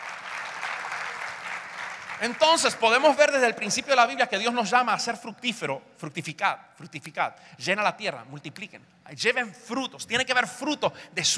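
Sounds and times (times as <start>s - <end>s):
audience applause: 0.0s - 3.0s
speech: 2.2s - 11.3s.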